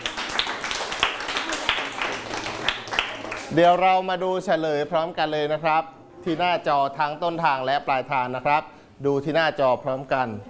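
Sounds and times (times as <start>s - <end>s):
group clapping hands: 0.0s - 3.8s
speech: 3.5s - 10.4s.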